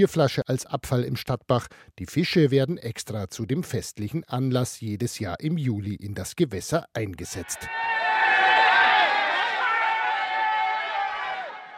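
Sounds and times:
speech: 0:00.0 - 0:08.0
crowd chattering and shouting at town stream fishing-out event: 0:07.4 - 0:11.7.

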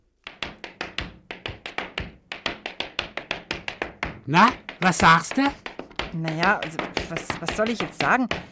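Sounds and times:
tap dancing steps played from phone: 0:00.2 - 0:08.4
speech: 0:04.3 - 0:08.4.

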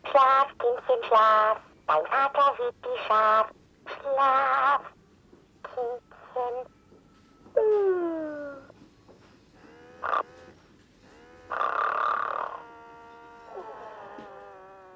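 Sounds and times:
speech: 0:00.2 - 0:05.0, 0:05.7 - 0:06.8
toy figure snoring: 0:07.6 - 0:08.7, 0:09.6 - 0:14.9.

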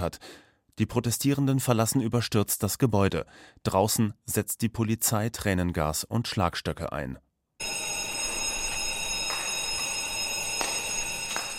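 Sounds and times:
speech: 0:00.0 - 0:07.7
continuous electronic alarm ringing: 0:07.6 - 0:11.5.

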